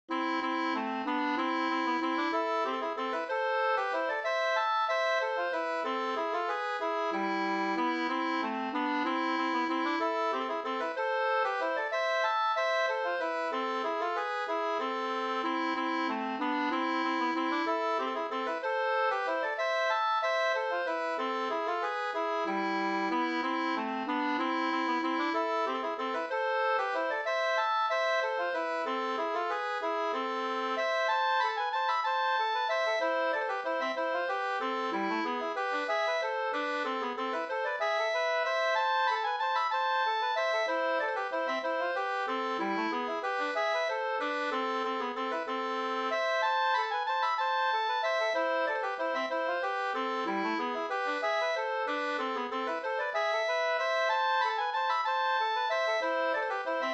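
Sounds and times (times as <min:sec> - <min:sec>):
waltz in A minor: 0:00.1 - 0:56.9.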